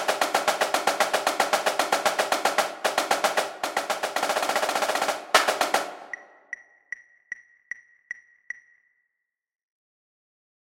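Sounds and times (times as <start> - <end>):
sequence of double snare drum hits: 0.0 - 6.3.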